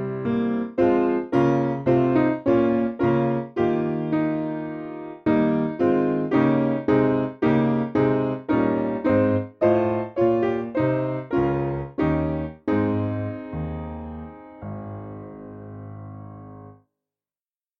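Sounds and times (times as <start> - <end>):
piano piece: 0.0 - 16.8.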